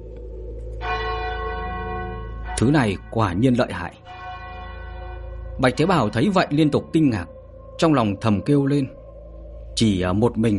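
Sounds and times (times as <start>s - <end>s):
large bell ringing: 0.8s - 9.0s
speech: 2.6s - 4.2s, 5.6s - 9.0s, 9.8s - 10.5s.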